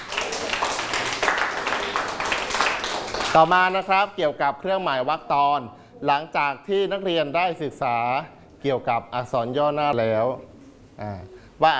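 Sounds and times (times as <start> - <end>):
class applauding: 0.0 - 3.9
speech: 3.3 - 11.7.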